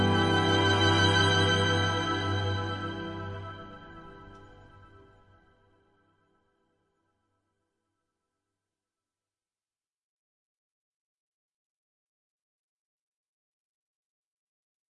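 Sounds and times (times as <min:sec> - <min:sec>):
longing ambient music: 0:00.0 - 0:06.0.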